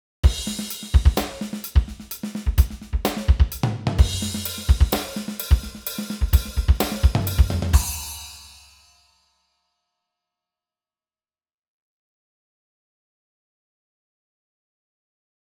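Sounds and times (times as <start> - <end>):
drums: 0.2 - 9.0.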